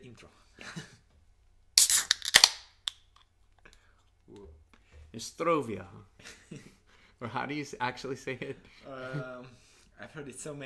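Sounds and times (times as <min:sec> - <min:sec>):
speech: 0:00.0 - 0:00.9, 0:05.2 - 0:10.6
beer bottle being pried open: 0:01.8 - 0:03.0.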